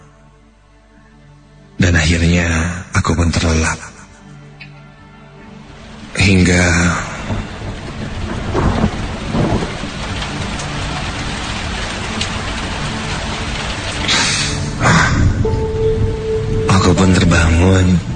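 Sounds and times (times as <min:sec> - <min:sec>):
speech: 0:02.1 - 0:03.9, 0:06.3 - 0:07.4
heavy pouring rain: 0:05.5 - 0:18.1.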